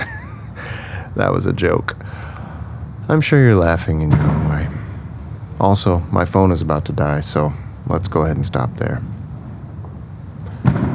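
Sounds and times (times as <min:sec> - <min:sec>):
laughter: 0:00.0 - 0:01.4
low rumbling background: 0:00.0 - 0:09.8
speech: 0:01.2 - 0:02.2, 0:03.1 - 0:04.8, 0:05.6 - 0:09.1
firework burst exploding outside: 0:04.1 - 0:05.0, 0:10.5 - 0:10.9.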